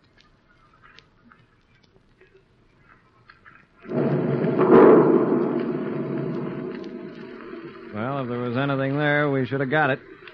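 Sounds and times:
depth charges fired from a ship exploding: 3.9s - 8.2s
speech: 8.2s - 10.1s.

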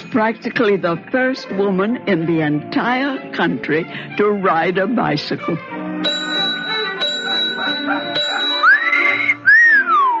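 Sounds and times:
speech: 0.1s - 6.2s
man whistling: 7.8s - 10.1s.

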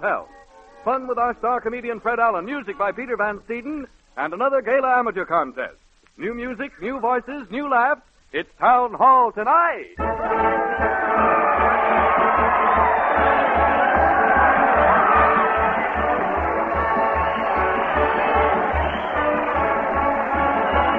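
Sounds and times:
speech: 0.0s - 11.3s
large crowd cheering and shouting: 10.0s - 20.9s
low thumping beat: 12.5s - 20.9s.

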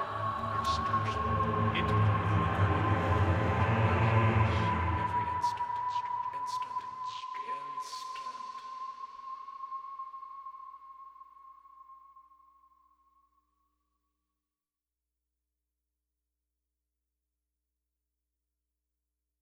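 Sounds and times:
wailing in caves: 0.0s - 12.2s.

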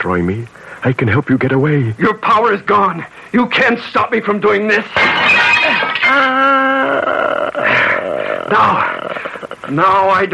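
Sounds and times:
speech: 0.0s - 5.4s, 8.5s - 9.0s, 9.6s - 10.3s
mirror glass breaking: 4.7s - 6.7s
strained groaning vocal tones: 6.4s - 9.8s.

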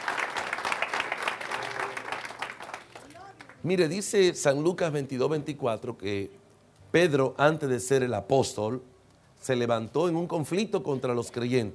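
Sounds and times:
applause: 0.0s - 3.7s
speech: 3.6s - 11.7s.

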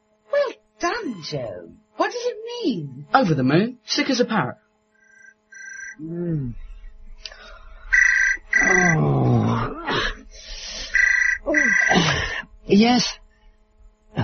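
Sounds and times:
speech: 0.8s - 4.6s, 6.0s - 6.6s, 8.7s - 9.2s, 12.7s - 13.2s
telephone ringing: 5.0s - 6.0s, 7.9s - 9.0s, 11.0s - 12.0s
croaking groaning vocal sounds: 6.0s - 6.8s, 7.9s - 10.3s, 11.0s - 12.4s.

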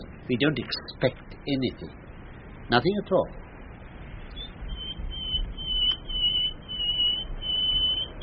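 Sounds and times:
speech: 0.3s - 2.0s, 2.7s - 3.4s
nightingale singing: 4.2s - 8.2s.

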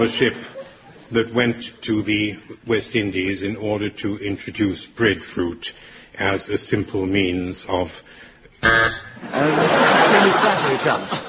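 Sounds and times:
laughter: 0.0s - 1.3s, 9.2s - 11.2s
speech: 0.0s - 11.2s
game show buzzer: 8.6s - 9.5s.

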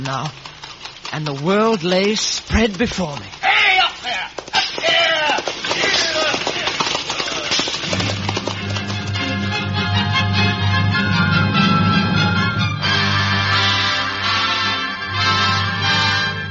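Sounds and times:
speech: 0.0s - 0.5s, 1.1s - 4.2s
horses' hooves clip-clopping on a hard road: 0.0s - 10.0s
low musical drone: 8.6s - 16.4s.

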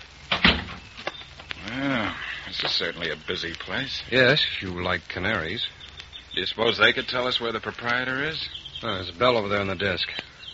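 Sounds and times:
lobby door opening and closing: 0.3s - 0.8s
speech: 2.5s - 10.3s.

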